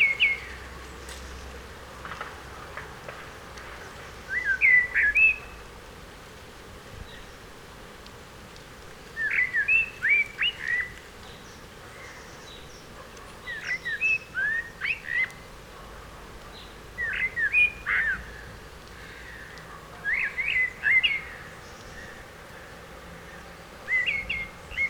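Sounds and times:
Eurasian blackbird song: 0.0s - 0.6s, 4.2s - 5.6s, 9.2s - 15.5s, 16.5s - 22.2s, 23.2s - 24.8s.

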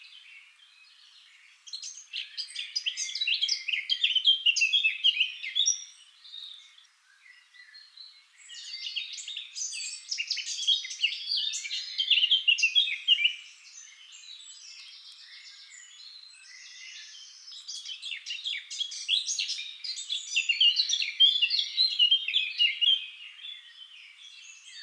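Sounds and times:
Eurasian blackcap warbling song: 0.0s - 24.8s.

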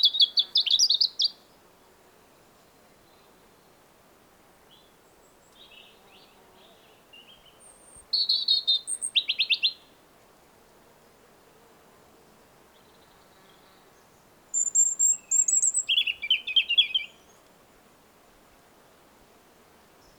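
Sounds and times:
European robin singing: 0.0s - 1.4s, 4.7s - 9.9s, 12.7s - 17.5s.

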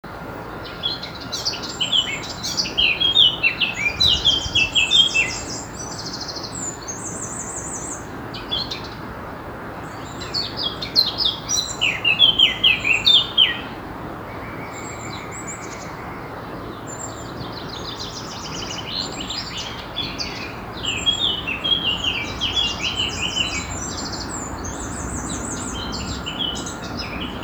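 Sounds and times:
Eurasian blackcap calls and chirps: 1.3s - 8.7s, 10.0s - 13.7s, 17.0s - 27.4s.

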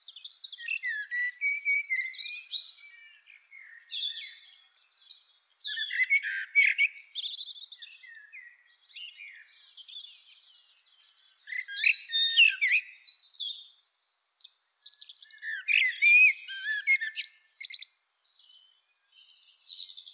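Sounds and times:
common blackbird song: 0.1s - 10.0s, 11.0s - 13.6s, 14.8s - 18.0s.

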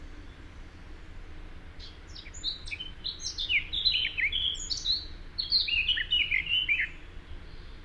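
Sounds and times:
Eurasian blackcap warbling song: 1.8s - 7.8s.

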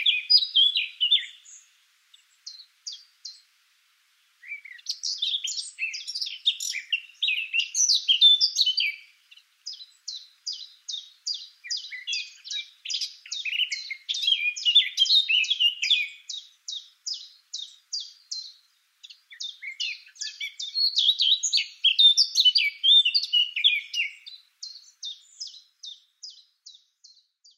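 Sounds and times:
Eurasian blackcap singing rapid chirps and warbled notes: 0.0s - 27.5s.

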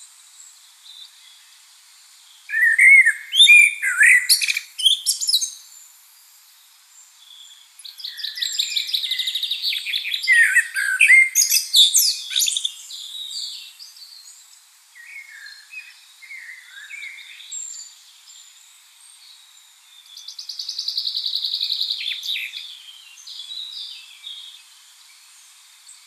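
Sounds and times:
common blackbird singing: 2.5s - 5.7s, 7.3s - 14.4s, 15.0s - 18.4s, 19.9s - 24.7s.

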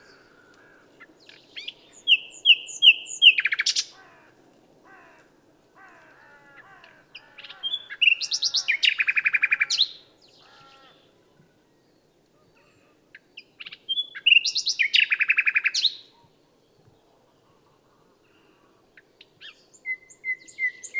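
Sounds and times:
common nightingale singing: 1.2s - 4.0s, 7.2s - 11.0s, 12.6s - 16.3s, 19.0s - 20.9s.

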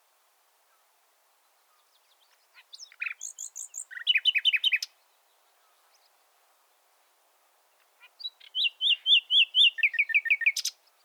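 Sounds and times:
Common nightingale singing: 1.7s - 6.1s, 8.1s - 11.0s.

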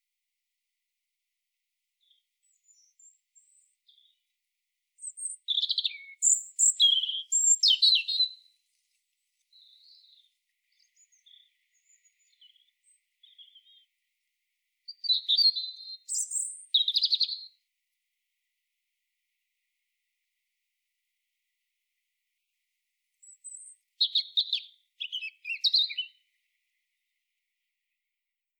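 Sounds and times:
European robin song: 2.0s - 4.3s, 5.0s - 14.0s, 14.9s - 17.6s, 23.2s - 27.0s.

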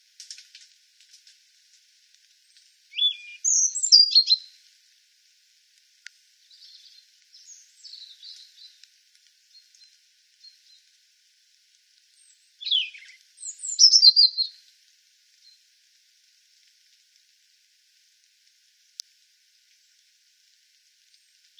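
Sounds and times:
European robin song: 2.4s - 4.6s, 6.5s - 8.8s, 12.2s - 14.6s.

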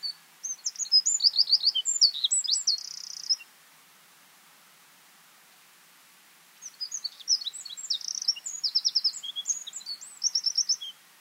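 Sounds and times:
Eurasian wren Troglodytes troglodytes singing: 0.0s - 3.5s, 6.6s - 11.0s.

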